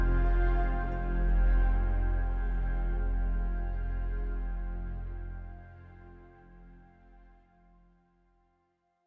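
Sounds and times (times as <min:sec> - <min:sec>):
organic pulsing sound: 0:00.0 - 0:06.1.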